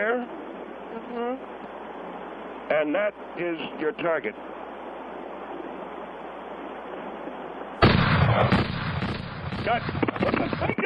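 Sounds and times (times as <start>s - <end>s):
speech: 1.0s - 1.8s, 2.7s - 4.6s, 9.6s - 10.8s
gunshot during target practice: 7.8s - 10.7s.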